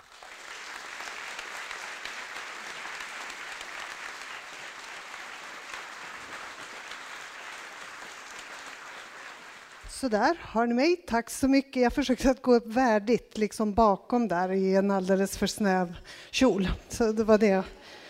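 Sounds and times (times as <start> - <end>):
audience applause: 0.0 - 9.9
speech: 10.0 - 18.0.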